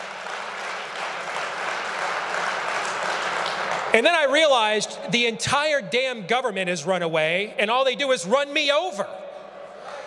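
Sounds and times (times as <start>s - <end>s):
audience applause: 0.0s - 4.0s
speech: 3.9s - 9.2s.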